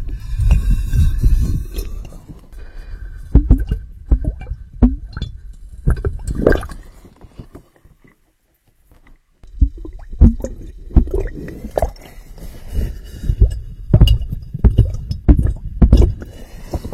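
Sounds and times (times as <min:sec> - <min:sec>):
underwater rumbling churn: 0:00.0 - 0:07.0, 0:09.4 - 0:16.9
underwater knocks, thumps and clicks: 0:03.3 - 0:05.3, 0:13.4 - 0:16.2.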